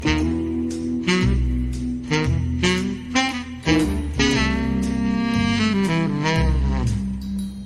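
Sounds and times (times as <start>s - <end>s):
musical riff: 0.0s - 7.6s.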